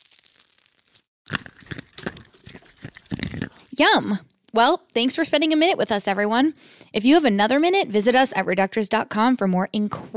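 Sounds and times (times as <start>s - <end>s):
face mask being peeled off: 0.0s - 3.8s
speech: 3.8s - 10.1s.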